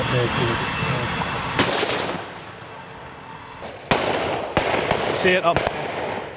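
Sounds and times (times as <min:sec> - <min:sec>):
speech: 0:00.1 - 0:01.2, 0:05.2 - 0:05.8
heavy gunfire: 0:01.6 - 0:02.4, 0:03.9 - 0:06.3.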